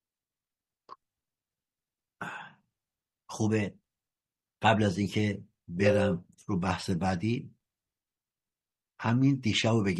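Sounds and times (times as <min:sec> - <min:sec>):
person clearing throat: 0:02.2 - 0:02.6
speech: 0:03.3 - 0:03.8, 0:04.6 - 0:07.6, 0:09.0 - 0:09.9.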